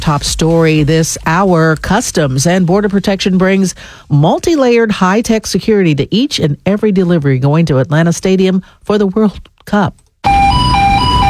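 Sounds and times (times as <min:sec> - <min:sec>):
speech: 0:00.0 - 0:10.4
warbling electronic tone from a giant X-ray scanner as a delivery truck passes through: 0:10.3 - 0:11.2.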